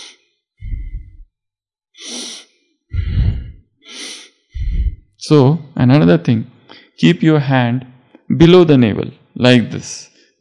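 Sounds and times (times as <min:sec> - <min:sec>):
deep abdominal breathing: 0:00.0 - 0:01.3, 0:02.0 - 0:05.2
speech: 0:05.3 - 0:10.4.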